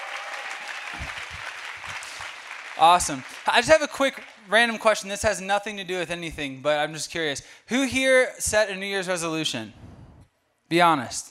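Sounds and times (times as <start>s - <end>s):
crowd applauding: 0.0s - 4.8s
speech: 2.8s - 9.8s, 10.7s - 11.2s.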